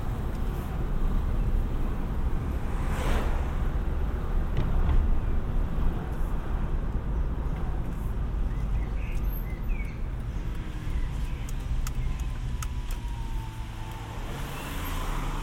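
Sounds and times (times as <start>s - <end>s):
car road noise in Sochi: 0.0s - 15.4s
brief brighter whoosh: 2.5s - 3.9s
small clicks and ticks: 9.0s - 14.1s.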